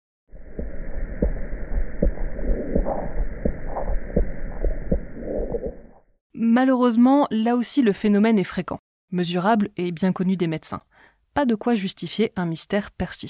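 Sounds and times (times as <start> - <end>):
low pulsating venous hum: 0.3 - 6.2
speech: 6.4 - 13.2.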